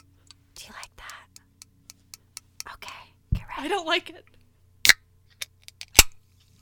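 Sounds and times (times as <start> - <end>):
fingers tapping on a can of sparkling water: 0.0 - 3.0
speech: 3.6 - 4.3.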